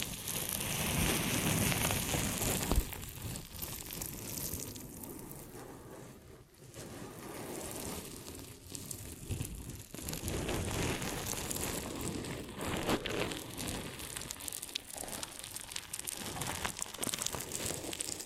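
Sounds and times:
ear and scalp massage rubbing and crinkling: 0.0 - 18.2.

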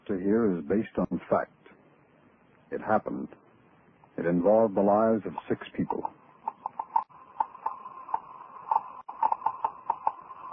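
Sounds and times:
speech: 0.1 - 1.6, 2.7 - 3.4, 4.2 - 6.2
Geiger counter clicking as it detects radioactivity: 5.2 - 10.5.

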